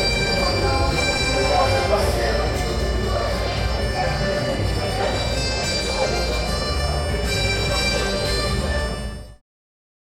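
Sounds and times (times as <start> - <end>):
village tavern ambience: 0.0 - 9.4.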